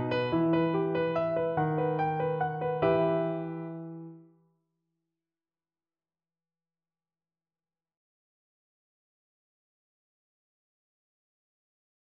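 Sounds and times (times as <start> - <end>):
piano waltz in E minor: 0.0 - 4.3.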